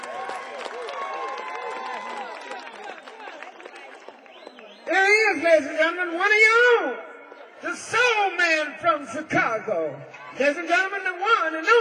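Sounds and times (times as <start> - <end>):
audience applause: 0.0 - 4.9
speech: 5.4 - 11.8.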